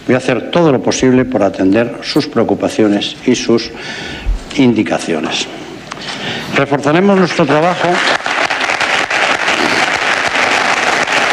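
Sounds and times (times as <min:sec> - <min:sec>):
speech: 0:00.1 - 0:05.6, 0:06.2 - 0:08.2
audience applause at an election closing event: 0:07.0 - 0:11.3.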